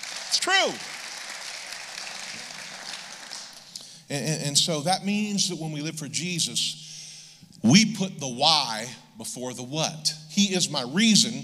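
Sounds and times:
audience clapping: 0:00.0 - 0:03.8
speech: 0:00.3 - 0:01.0, 0:04.1 - 0:06.9, 0:07.6 - 0:11.4.

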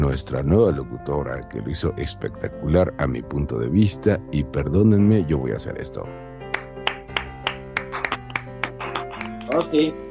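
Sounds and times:
speech: 0:00.2 - 0:06.3, 0:09.6 - 0:10.0
hands clapping in applause: 0:06.5 - 0:09.8.

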